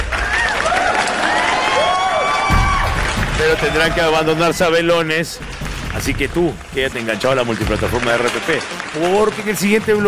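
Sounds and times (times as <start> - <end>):
audience applause: 0.0 - 10.0
speech: 3.4 - 10.0.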